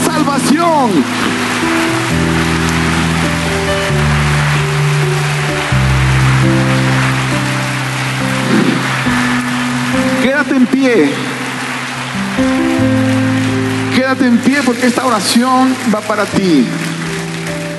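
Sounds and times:
church audience applause: 0.0 - 17.7
speech: 0.6 - 1.9, 10.8 - 11.4, 14.1 - 16.9.

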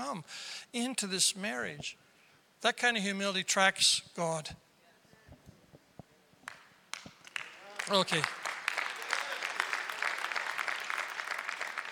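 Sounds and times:
speech: 0.1 - 4.6, 7.9 - 8.4
part of audience clapping: 6.4 - 11.9.

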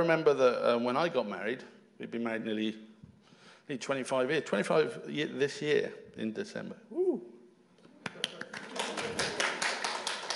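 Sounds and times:
speech: 0.0 - 2.9, 3.7 - 7.3
hand clapping: 8.0 - 10.3.

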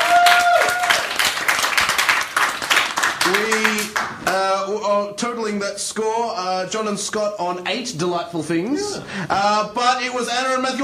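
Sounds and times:
round of applause: 0.0 - 4.4
speech: 5.0 - 10.8.

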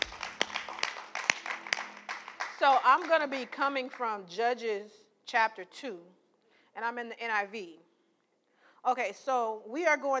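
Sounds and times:
audience applause: 0.0 - 3.6
speech: 2.6 - 6.2, 6.8 - 7.8, 8.8 - 10.1.

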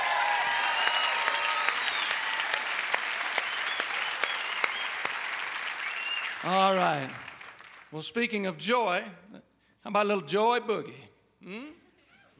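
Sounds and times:
crowd applauding the band: 0.0 - 7.9
speech: 6.4 - 7.2, 7.9 - 11.8.

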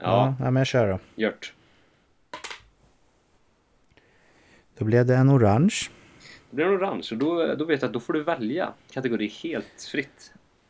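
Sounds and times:
speech: 0.0 - 1.6, 4.8 - 10.4
die being rolled: 2.4 - 2.8.

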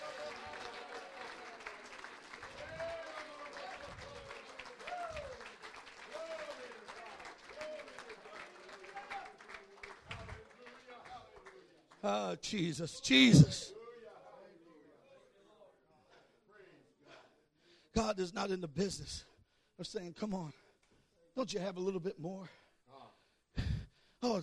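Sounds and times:
audience clapping hands: 0.0 - 12.3
speech: 12.1 - 13.7, 18.4 - 20.6, 21.4 - 22.6, 24.2 - 24.4.

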